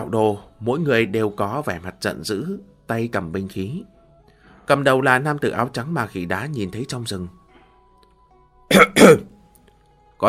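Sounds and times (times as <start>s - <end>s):
speech: 0.0s - 3.9s, 4.7s - 7.4s, 8.7s - 9.3s
dry cough: 8.7s - 9.3s.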